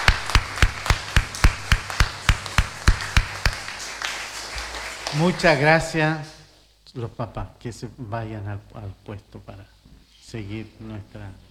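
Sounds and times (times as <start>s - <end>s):
audience applause: 0.0s - 6.3s
speech: 5.2s - 11.4s.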